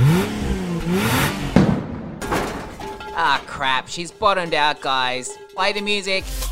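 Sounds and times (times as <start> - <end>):
car engine revving for a drag race: 0.0 - 2.0
speech: 3.6 - 6.4.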